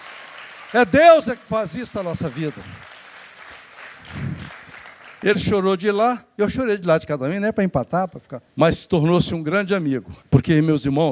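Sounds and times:
crowd clapping: 0.0 - 5.8
speech: 0.7 - 2.9, 5.2 - 11.1.

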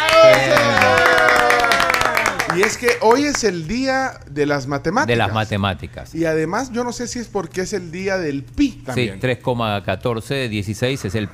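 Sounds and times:
voices cheering and calling out: 0.0 - 3.0
crowd applauding: 0.0 - 3.4
speech: 2.6 - 11.3.

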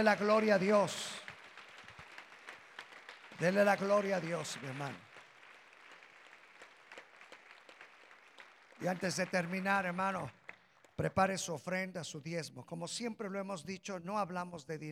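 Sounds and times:
speech: 0.0 - 1.2, 3.4 - 5.1, 8.8 - 10.4, 11.0 - 14.8
audience applause: 0.0 - 11.0.

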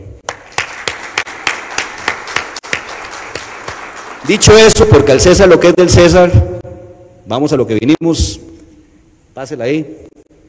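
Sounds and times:
audience applause: 0.2 - 5.6
speech: 4.3 - 6.5, 7.3 - 8.5, 9.4 - 10.2.

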